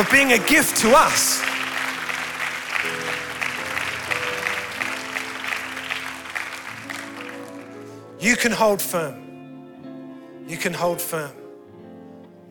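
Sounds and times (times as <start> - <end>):
speech: 0.0 - 1.5, 8.2 - 9.2, 10.5 - 11.4
audience applause: 0.0 - 7.9
low sustained music notes: 0.0 - 12.4.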